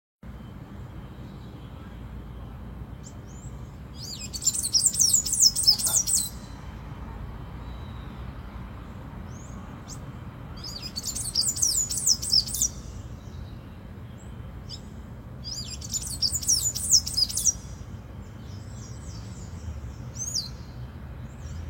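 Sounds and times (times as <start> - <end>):
tanager song of thin squeaky high twittering: 0.2 - 6.8, 7.5 - 21.6.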